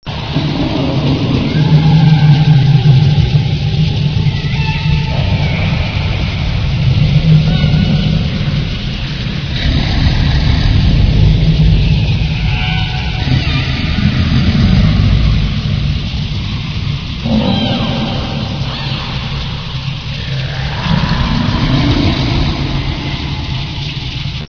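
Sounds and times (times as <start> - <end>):
prison hall ambience: 0.1 - 24.4.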